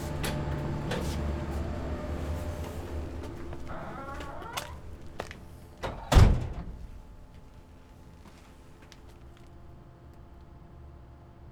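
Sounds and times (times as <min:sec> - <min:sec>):
footsteps walking inside the La Silla NTT: 0:00.0 - 0:05.8, 0:07.0 - 0:09.7.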